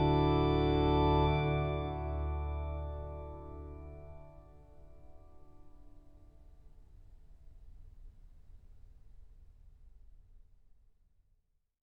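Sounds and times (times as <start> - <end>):
organist playing a trumpet tune: 0.0 - 4.6.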